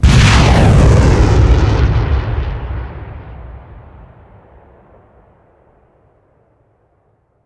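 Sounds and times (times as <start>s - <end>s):
rocket trail: 0.0s - 5.6s.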